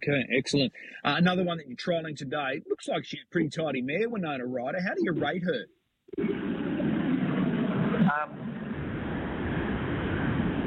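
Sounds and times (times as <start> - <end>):
speech: 0.0 - 6.7
jet engines roaring as planes take off: 6.2 - 10.6.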